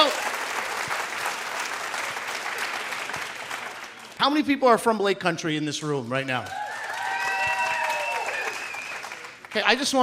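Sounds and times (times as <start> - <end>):
audience round of applause: 0.0 - 4.2, 6.5 - 10.0
speech: 4.2 - 6.6, 9.6 - 10.0.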